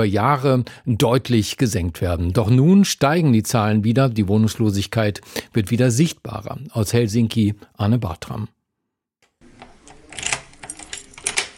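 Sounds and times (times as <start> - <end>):
speech: 0.0 - 8.6
apartment door being unlocked and opened: 9.5 - 11.5.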